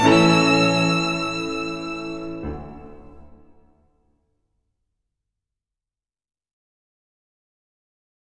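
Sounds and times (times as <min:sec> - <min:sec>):
piano trio playing moderato scherzoso: 0:00.0 - 0:03.8.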